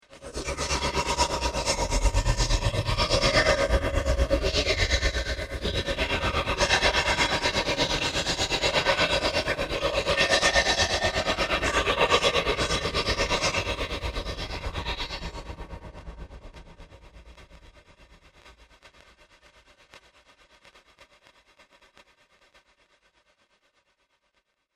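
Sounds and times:
horror music: 0:00.2 - 0:16.3.

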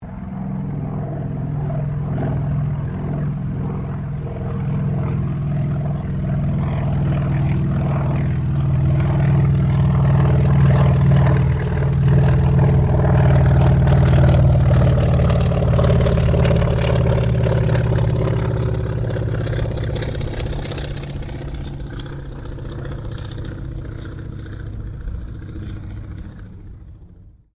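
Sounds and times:
CAC Wirraway aircraft passing: 0:00.0 - 0:27.5.

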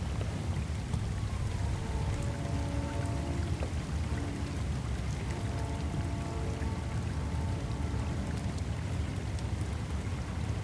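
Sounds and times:
drizzle of rain in swamp or marsh area: 0:00.0 - 0:10.6
faint sirens: 0:01.1 - 0:08.9.

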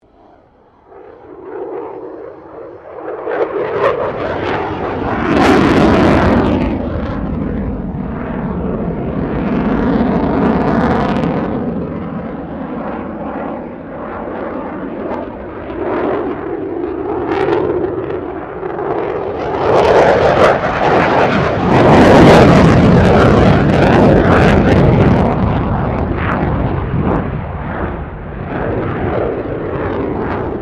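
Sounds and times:
F16 Falcon aircraft maneuvering: 0:00.0 - 0:30.5.

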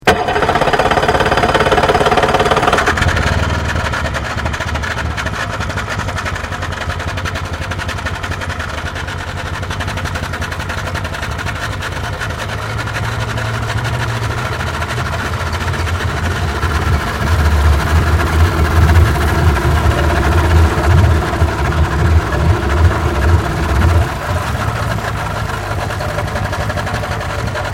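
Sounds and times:
small boat starting up and moving away: 0:00.0 - 0:27.7.

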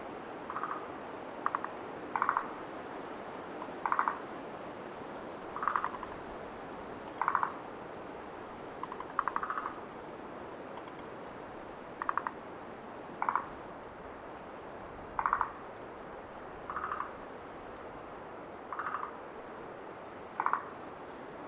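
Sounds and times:
frogs croaking at night at Lake Tazawa: 0:00.3 - 0:04.5, 0:05.4 - 0:07.8, 0:08.6 - 0:14.2, 0:15.0 - 0:21.1.

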